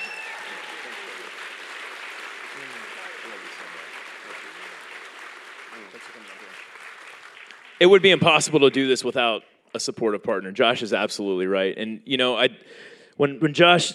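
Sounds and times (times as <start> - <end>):
crowd applauding: 0.0 - 8.9
faint voices murmuring: 2.6 - 4.6
speech: 7.8 - 13.9.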